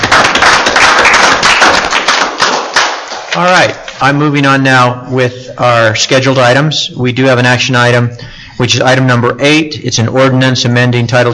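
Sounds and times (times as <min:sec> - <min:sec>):
round of applause: 0:00.0 - 0:03.9
speech: 0:03.4 - 0:11.3.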